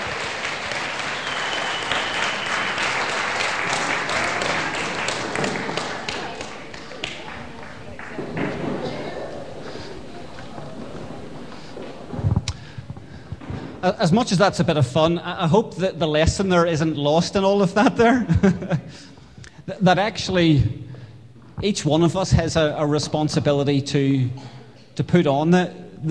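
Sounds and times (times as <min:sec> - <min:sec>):
audience applause: 0:00.0 - 0:09.9
speech: 0:13.9 - 0:20.8, 0:21.6 - 0:26.0
laughter: 0:17.8 - 0:19.1.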